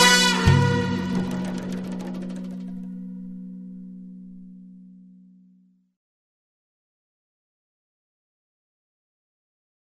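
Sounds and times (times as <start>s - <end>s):
instrumental music: 0.0s - 5.9s.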